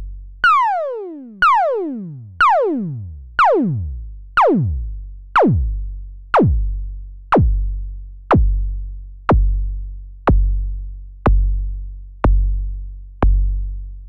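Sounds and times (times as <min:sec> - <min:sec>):
Elektron Classic Kick techno kick drum: 0:00.5 - 0:07.7, 0:08.3 - 0:08.7, 0:09.3 - 0:09.7, 0:10.3 - 0:10.7, 0:11.3 - 0:11.7, 0:12.3 - 0:12.6, 0:13.3 - 0:13.6.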